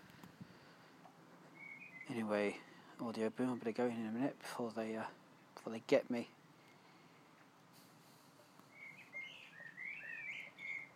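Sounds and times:
birds singing in the garden: 0:01.5 - 0:04.1, 0:08.6 - 0:10.9
speech: 0:02.1 - 0:06.4.

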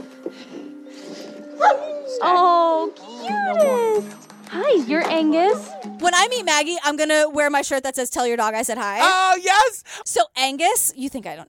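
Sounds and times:
working search dogs whining and whimpering: 0:01.5 - 0:04.2, 0:05.4 - 0:06.0
search dog yipping: 0:01.6 - 0:02.2, 0:05.4 - 0:06.0
speech: 0:01.6 - 0:11.4.

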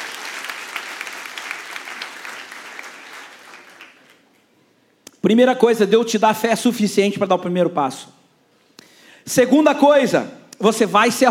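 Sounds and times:
church congregation applauding during a service: 0:00.0 - 0:04.5
speech: 0:05.2 - 0:08.2, 0:09.3 - 0:11.2.

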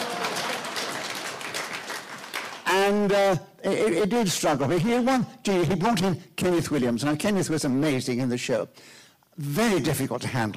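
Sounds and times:
audience applause: 0:00.0 - 0:02.9
speech: 0:02.8 - 0:10.5.

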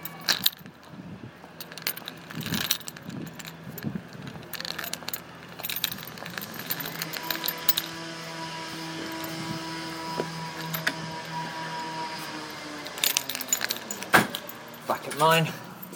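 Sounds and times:
keys jangling against a lock while unlocking a door: 0:00.0 - 0:00.9, 0:01.5 - 0:08.0, 0:09.0 - 0:09.5, 0:10.4 - 0:15.9
low engine hum: 0:00.0 - 0:14.9.

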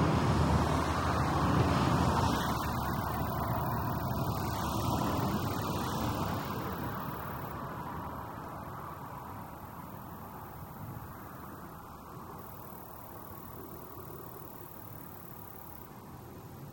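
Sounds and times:
road traffic: 0:00.0 - 0:16.7
crickets chirping: 0:00.1 - 0:16.7
grasshoppers chirping: 0:01.8 - 0:07.5, 0:12.4 - 0:15.9.

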